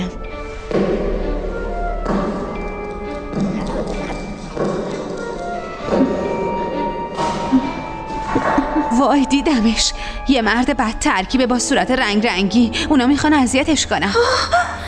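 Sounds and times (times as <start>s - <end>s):
slow heavy thudding footsteps: 0.3s - 9.0s
speech: 9.0s - 14.7s.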